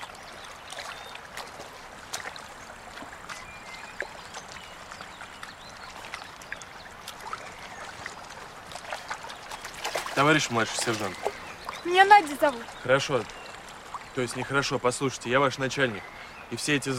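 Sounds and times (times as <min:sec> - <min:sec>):
washing a soldier's tunic in a river: 0:00.0 - 0:16.9
speech: 0:10.2 - 0:13.4, 0:14.2 - 0:16.9.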